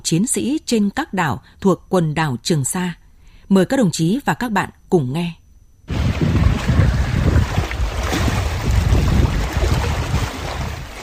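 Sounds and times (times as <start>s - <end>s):
speech: 0.0s - 6.0s
sea waves murmuring: 5.9s - 11.0s.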